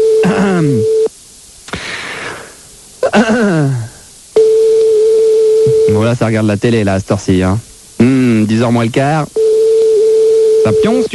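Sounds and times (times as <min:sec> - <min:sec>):
telephone line tone: 0:00.0 - 0:01.1, 0:04.4 - 0:06.2, 0:09.4 - 0:11.1
speech: 0:06.1 - 0:09.4, 0:10.6 - 0:11.1.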